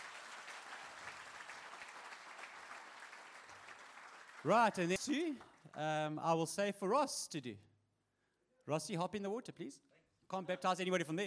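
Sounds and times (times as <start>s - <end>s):
round of applause from a crowd: 0.0s - 5.9s
speech: 4.4s - 7.7s, 8.7s - 11.2s.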